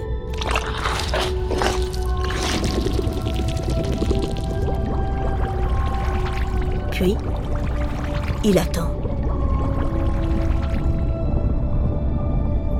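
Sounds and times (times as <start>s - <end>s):
liquid gushing underwater: 0.3s - 12.0s
speech: 8.4s - 8.9s.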